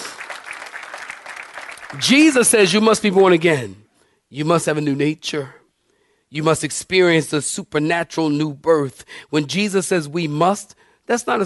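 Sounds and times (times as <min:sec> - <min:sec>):
audience clapping hands: 0:00.0 - 0:03.4
speech: 0:01.9 - 0:05.6, 0:06.3 - 0:11.4.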